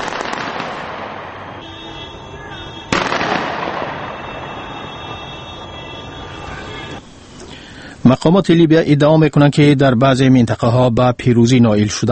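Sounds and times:
gunfire shot into the air: 0:00.0 - 0:01.6, 0:02.9 - 0:05.0
speech: 0:08.1 - 0:12.0.

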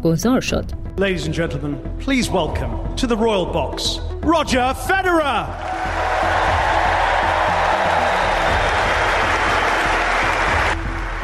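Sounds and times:
speech: 0:00.0 - 0:06.0
standing ovation applause in tennis stadium: 0:05.5 - 0:11.2.

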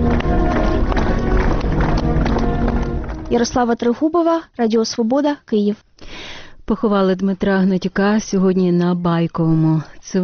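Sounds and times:
dense sustained applause from a large crowd: 0:00.0 - 0:03.6
speech: 0:03.3 - 0:10.2.

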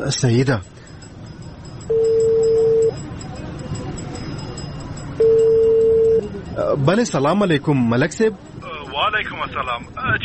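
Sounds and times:
speech: 0:00.0 - 0:00.8, 0:06.7 - 0:10.2
telephone ringback tone: 0:01.9 - 0:03.0, 0:03.6 - 0:06.4.

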